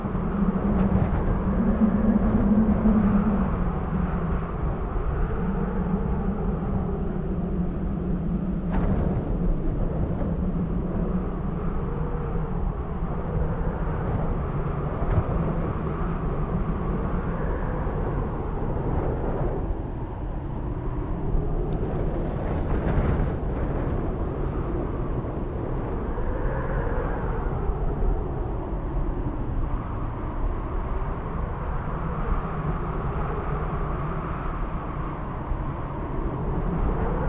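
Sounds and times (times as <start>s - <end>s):
gusty wind on a desert plain: 0.0s - 37.2s.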